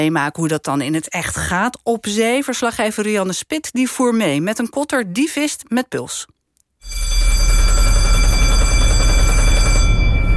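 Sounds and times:
speech: 0.0s - 7.2s
electric bell ringing on a fishing boat: 6.8s - 10.3s.

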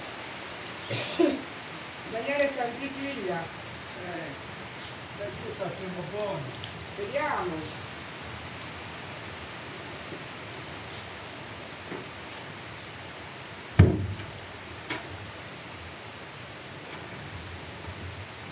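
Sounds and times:
summer storm rain hissing at Colle Castello Tivoli: 0.0s - 18.5s
speech: 0.9s - 1.3s, 2.1s - 4.5s, 5.2s - 7.8s
loud splat: 13.8s - 14.4s.

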